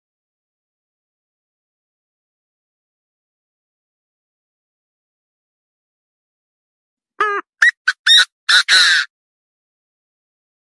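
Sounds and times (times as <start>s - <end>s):
partridge calling: 7.2s - 9.1s.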